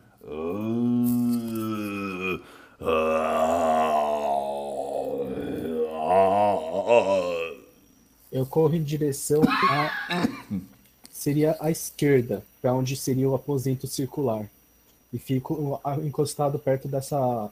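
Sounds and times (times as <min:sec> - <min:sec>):
voice imitating a low groaning murmur: 0:00.2 - 0:07.8
speech: 0:08.4 - 0:17.5.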